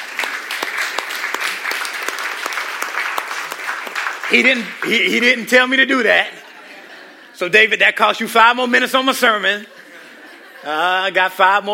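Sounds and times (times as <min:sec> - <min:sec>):
audience clapping: 0:00.0 - 0:05.9
speech: 0:04.3 - 0:06.4, 0:07.4 - 0:09.8, 0:10.6 - 0:11.7
laughter: 0:06.1 - 0:07.8, 0:09.4 - 0:11.4.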